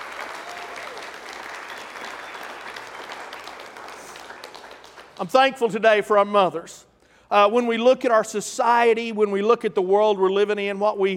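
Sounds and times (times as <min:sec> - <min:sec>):
audience hand clapping: 0:00.0 - 0:05.7
speech: 0:05.2 - 0:11.1.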